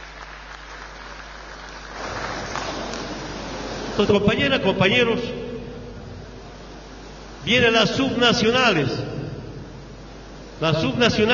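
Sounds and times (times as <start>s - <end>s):
crowd applauding: 0.0s - 3.3s
speech: 4.0s - 5.4s, 7.5s - 9.1s, 10.6s - 11.3s.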